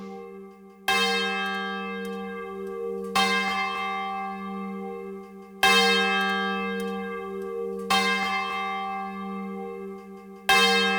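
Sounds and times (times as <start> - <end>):
large swinging church bell tolling: 0.0 - 10.9.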